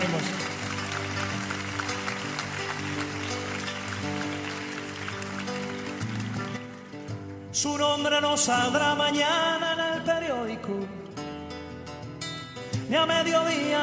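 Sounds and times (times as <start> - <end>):
applause: 0.0 - 7.4
speech: 7.6 - 11.0, 12.9 - 13.8.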